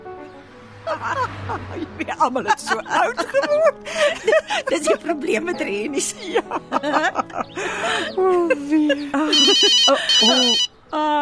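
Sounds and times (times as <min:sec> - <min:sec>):
laughter: 0:00.8 - 0:10.7
speech: 0:00.9 - 0:11.1
telephone electronic ringtone: 0:09.3 - 0:10.7.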